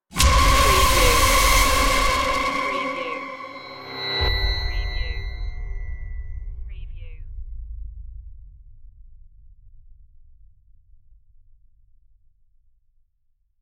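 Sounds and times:
trailer stinger: 0.1s - 6.6s.

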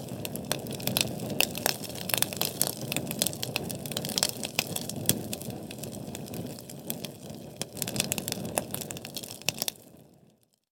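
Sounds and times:
large Sterno flame burning: 0.0s - 10.0s.

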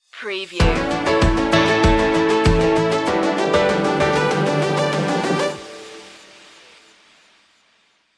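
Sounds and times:
musical stinger: 0.6s - 6.5s.

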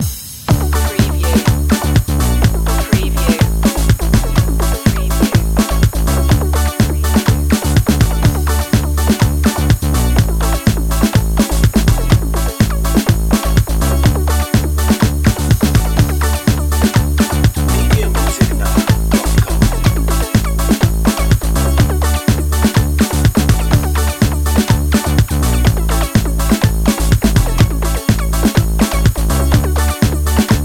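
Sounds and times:
techno underscore music: 0.0s - 30.6s.

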